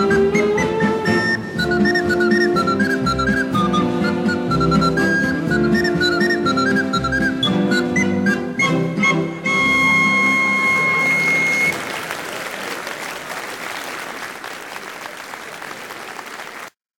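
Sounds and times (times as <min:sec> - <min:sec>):
whistled polka: 0:00.0 - 0:11.9.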